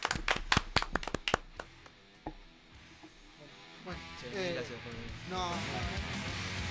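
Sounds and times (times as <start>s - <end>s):
audience applause: 0.0s - 1.8s
speech: 4.2s - 6.6s.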